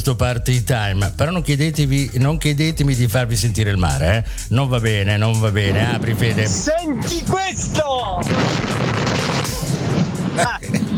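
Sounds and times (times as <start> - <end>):
speech: 0.0 - 9.0
explosion sound effect: 5.6 - 10.9.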